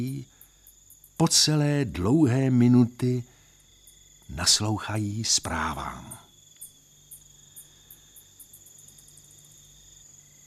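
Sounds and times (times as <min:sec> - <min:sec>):
bats giving sharp metallic high-pitched chirps at night: 0:00.0 - 0:01.4, 0:03.3 - 0:09.9
speech: 0:01.2 - 0:03.3, 0:04.3 - 0:06.2.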